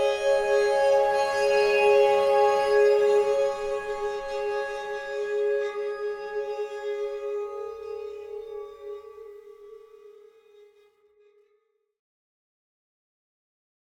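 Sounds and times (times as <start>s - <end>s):
waterphone: 0.0s - 10.8s.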